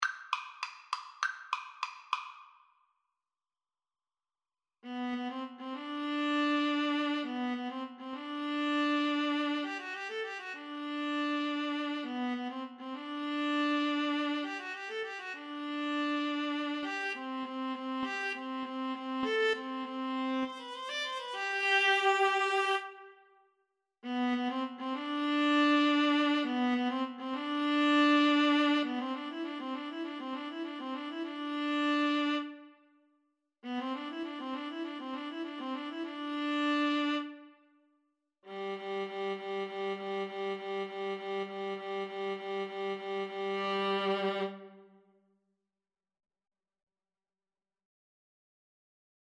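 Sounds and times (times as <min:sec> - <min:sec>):
viola duet: 0:04.8 - 0:23.3, 0:24.0 - 0:32.8, 0:33.6 - 0:37.6, 0:38.5 - 0:45.0.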